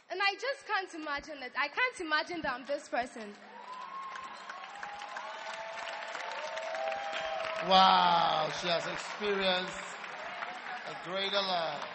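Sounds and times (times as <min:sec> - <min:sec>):
speech: 0:00.4 - 0:03.6, 0:07.6 - 0:09.9, 0:10.9 - 0:11.9
audience applause: 0:03.4 - 0:11.9
faint cheering: 0:03.5 - 0:11.9.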